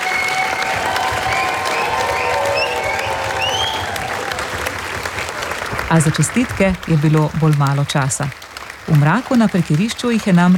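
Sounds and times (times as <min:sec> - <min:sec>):
faint whistles or cheers from an audience: 0:00.0 - 0:05.9
audience applause after a concert: 0:00.0 - 0:10.5
speech: 0:05.9 - 0:10.5.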